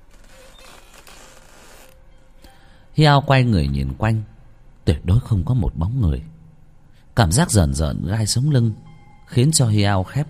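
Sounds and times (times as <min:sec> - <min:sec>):
wooden stilt house creaking at night: 0:00.0 - 0:02.1
speech: 0:03.0 - 0:04.3, 0:04.9 - 0:06.4, 0:07.2 - 0:10.2.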